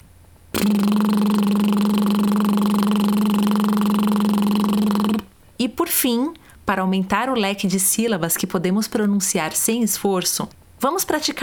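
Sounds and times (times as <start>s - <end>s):
sustained rolled TR tongue trill: 0.5s - 5.3s
speech: 0.6s - 1.1s, 5.7s - 11.4s.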